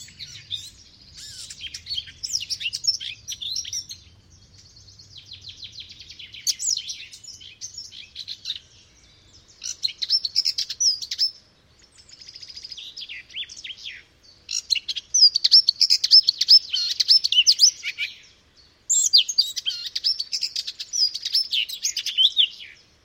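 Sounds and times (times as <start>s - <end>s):
Eurasian blackcap warbling song: 0.0s - 23.0s.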